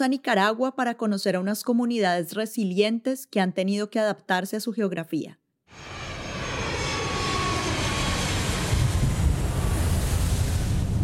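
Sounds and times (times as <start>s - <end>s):
speech: 0.0s - 6.0s
airplane engine during landing: 5.7s - 11.0s.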